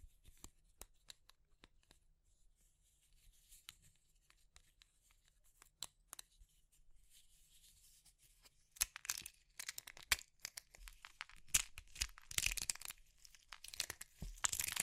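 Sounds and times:
soap, chalk, meringue and pastel being crushed: 8.8s - 14.8s.

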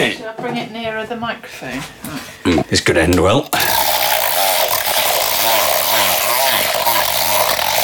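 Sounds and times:
speech: 0.1s - 3.8s
blender whirring while mixing a cocoa maca herbal drink: 3.5s - 7.8s.

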